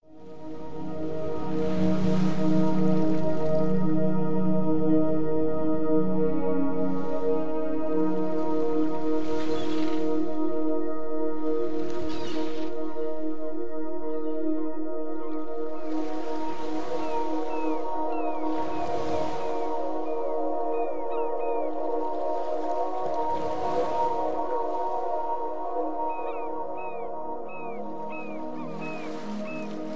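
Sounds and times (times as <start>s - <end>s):
dream meditation music: 0.0s - 29.9s.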